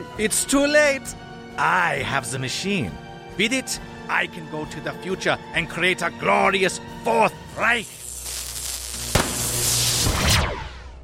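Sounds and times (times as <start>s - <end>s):
speech: 0.2s - 8.0s
gunshot fired at a fleeing villain: 9.1s - 11.0s.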